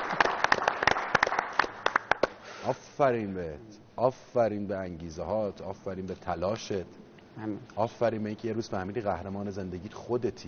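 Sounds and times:
people clapping: 0.0 - 2.5
speech: 2.6 - 10.4.

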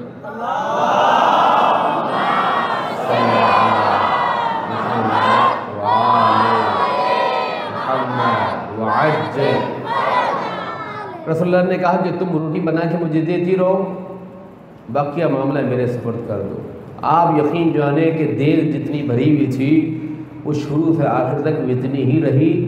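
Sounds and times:
large crowd reciting salawat in unison: 0.2 - 10.9
speech: 0.3 - 0.6, 11.4 - 14.1, 14.9 - 22.6.

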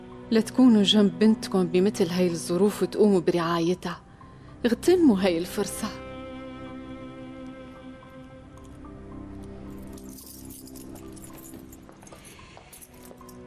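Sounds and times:
steady tonal background: 0.0 - 13.4
speech: 0.3 - 4.0, 4.6 - 6.0
house keys jangling as they are handed over: 9.7 - 13.4.

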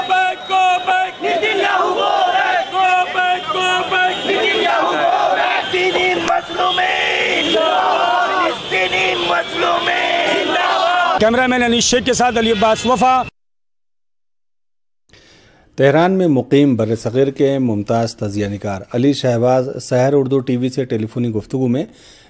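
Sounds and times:
protesters chanting slogans at a Mumbai demonstration: 0.0 - 11.2
speech: 11.2 - 13.3, 15.8 - 22.2.

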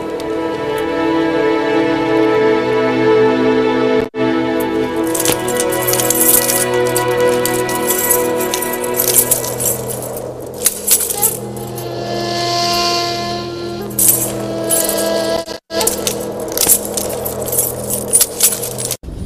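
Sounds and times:
droning background: 0.0 - 19.1
metal chains fastened onto a prisoner's feet: 5.0 - 11.9, 13.8 - 19.0.

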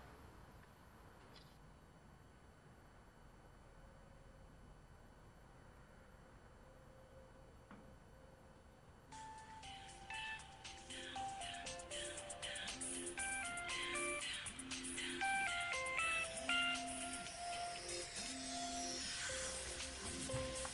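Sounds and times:
melodic electronic ring tone during an outgoing phone call: 9.2 - 20.7.

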